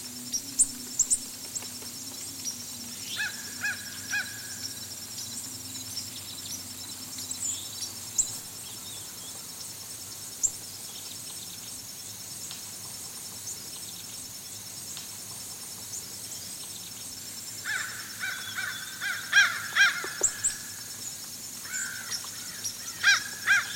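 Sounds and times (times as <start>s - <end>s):
thin steady insect hiss: 0.0s - 23.7s
fish crows giving short nasal caws: 3.1s - 4.6s, 17.6s - 20.7s, 21.6s - 23.7s.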